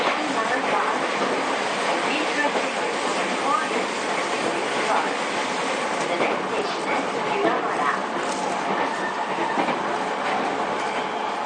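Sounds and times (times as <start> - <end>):
JR East 231 series train running between Ito and Yokohama: 0.0 - 11.4.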